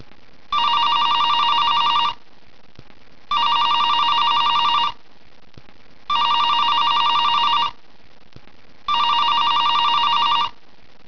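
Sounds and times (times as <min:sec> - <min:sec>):
telephone: 0:00.6 - 0:02.2, 0:03.3 - 0:05.0, 0:06.1 - 0:07.8, 0:08.9 - 0:10.6.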